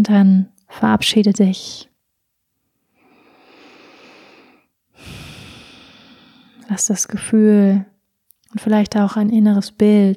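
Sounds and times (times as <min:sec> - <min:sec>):
speech: 0:00.0 - 0:01.9, 0:06.7 - 0:07.9, 0:08.5 - 0:10.1
deep breathing in and out during a guided meditation: 0:02.6 - 0:06.7.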